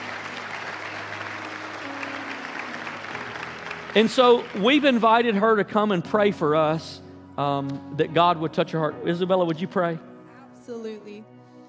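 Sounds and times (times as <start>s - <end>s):
audience applauding to welcome a new missionary: 0.0s - 6.2s
speech: 3.9s - 10.1s, 10.7s - 11.4s.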